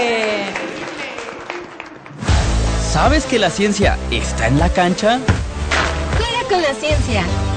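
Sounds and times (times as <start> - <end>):
applause for children after a physical exercise: 0.1 - 2.8
speech: 2.9 - 5.4, 6.5 - 7.5.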